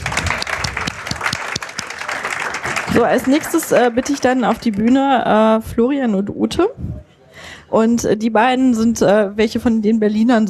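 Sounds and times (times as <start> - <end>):
audience applause at a stage event in Berlin: 0.0 - 4.5
speech: 3.0 - 6.9, 7.7 - 10.4.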